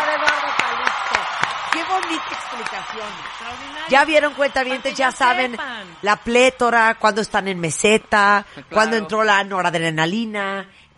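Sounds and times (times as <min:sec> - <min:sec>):
audience applause: 0:00.0 - 0:07.1
speech: 0:02.0 - 0:10.9.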